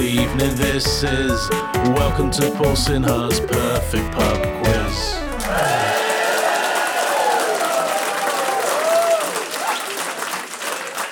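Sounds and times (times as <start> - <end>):
speech: 0.3 - 5.7
audience applause: 5.2 - 11.1.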